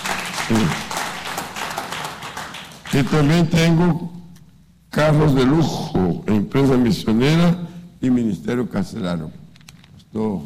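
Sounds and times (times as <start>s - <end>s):
church congregation clapping during a Spanish-language service: 0.0s - 3.7s
speech: 0.5s - 0.9s, 3.0s - 4.2s, 5.0s - 9.4s, 10.1s - 10.4s.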